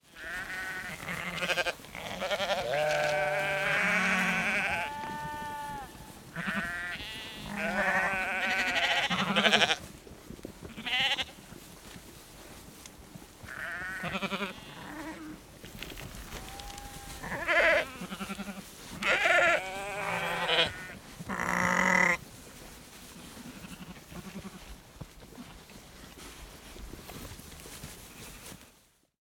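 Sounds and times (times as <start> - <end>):
sheep bleating: 0.1 - 9.8, 13.5 - 15.4, 16.4 - 22.2, 23.5 - 24.7.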